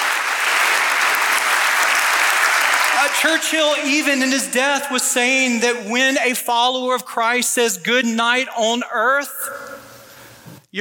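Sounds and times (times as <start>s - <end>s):
audience applause: 0.0s - 4.5s
speech: 3.0s - 9.6s.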